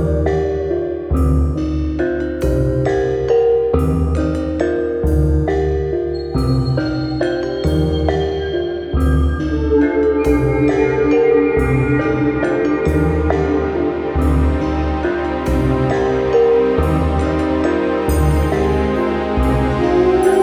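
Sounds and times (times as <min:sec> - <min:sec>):
intro music: 0:00.0 - 0:20.4.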